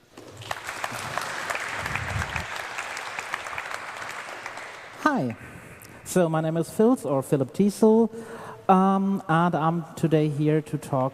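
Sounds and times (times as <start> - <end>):
audience applause: 0.1 - 5.0
speech: 5.0 - 5.5, 6.1 - 11.1.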